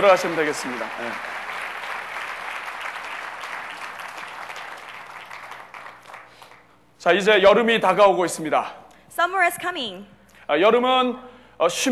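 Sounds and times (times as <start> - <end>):
speech: 0.0 - 1.4, 7.0 - 11.9
audience applause: 0.0 - 6.7.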